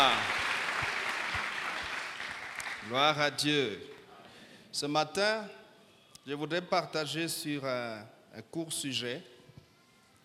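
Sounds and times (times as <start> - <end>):
church congregation applauding during a service: 0.0 - 4.1
speech: 2.9 - 4.0, 4.7 - 5.6, 6.3 - 9.3.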